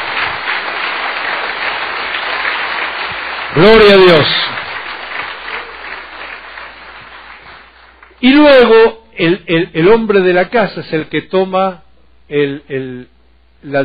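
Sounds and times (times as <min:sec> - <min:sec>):
audience applause: 0:00.0 - 0:08.2
speech: 0:03.6 - 0:04.6, 0:08.2 - 0:13.8.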